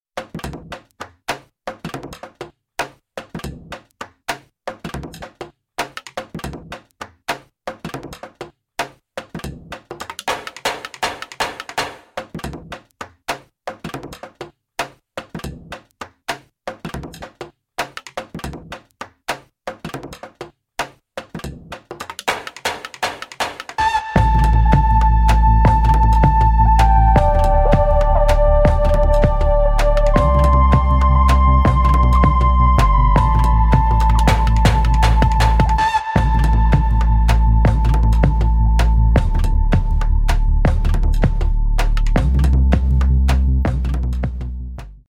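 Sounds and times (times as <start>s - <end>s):
instrumental music: 22.2s - 45.0s.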